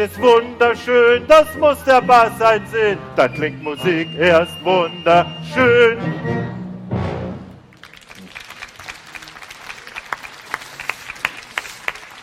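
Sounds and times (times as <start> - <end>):
speech: 0.0 - 6.6
audience applause: 7.7 - 12.2.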